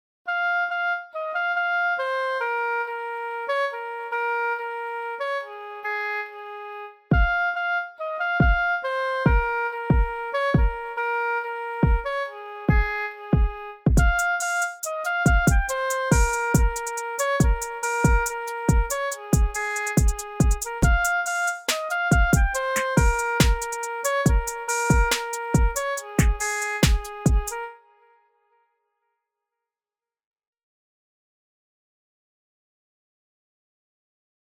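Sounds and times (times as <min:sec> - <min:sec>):
oboe: 0:00.3 - 0:13.4, 0:14.0 - 0:28.2.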